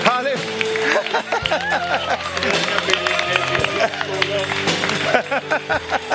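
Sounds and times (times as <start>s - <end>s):
laughter: 0.7s - 6.1s
dense hubbub of many voices and shouts: 1.2s - 4.8s.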